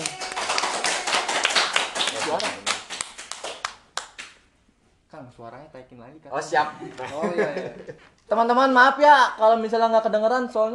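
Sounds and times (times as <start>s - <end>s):
clapping: 0.0s - 4.4s
speech: 5.4s - 10.7s.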